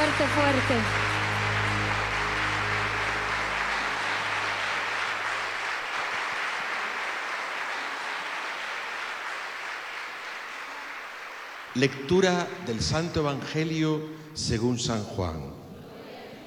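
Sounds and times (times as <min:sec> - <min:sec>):
audience applauding: 0:00.0 - 0:13.0
speech: 0:00.2 - 0:01.2, 0:11.8 - 0:15.6.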